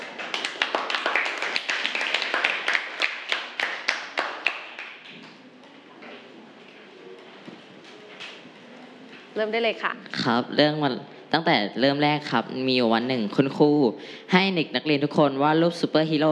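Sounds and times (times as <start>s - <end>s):
hands clapping: 0.0s - 5.4s
speech: 9.4s - 16.3s.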